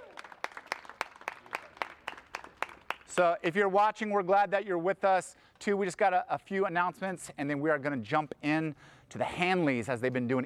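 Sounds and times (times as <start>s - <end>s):
audience clapping: 0.0s - 3.4s
speech: 3.1s - 10.4s.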